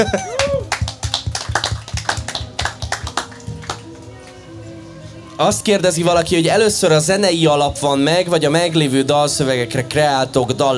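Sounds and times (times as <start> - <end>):
speech: 0.0 - 0.4, 5.4 - 10.7
person laughing and talking: 0.0 - 0.7
audience applause: 0.0 - 4.4.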